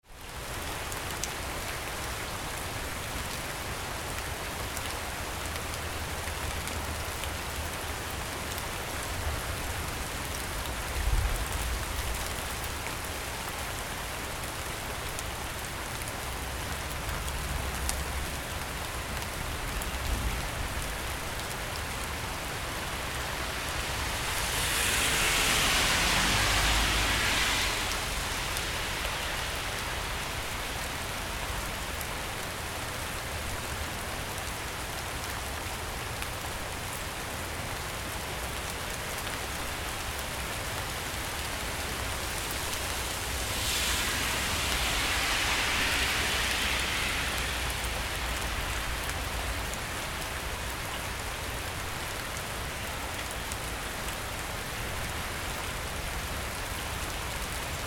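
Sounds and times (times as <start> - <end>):
light rain: 0.0 - 57.8
thunder: 43.2 - 49.3.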